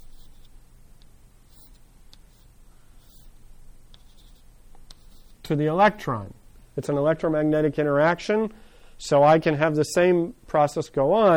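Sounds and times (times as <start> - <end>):
marker squeaking on a board while drawing a diagram in a physics lecture: 0.0 - 0.6, 1.5 - 5.5
constant low hiss: 0.0 - 11.3
speech: 5.5 - 11.3.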